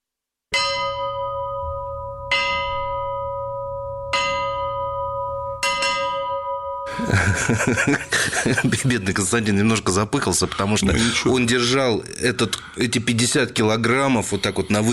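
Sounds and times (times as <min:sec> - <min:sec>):
ship's bell ringing: 0:00.6 - 0:07.0
laughter: 0:06.9 - 0:09.2
speech: 0:07.0 - 0:14.9.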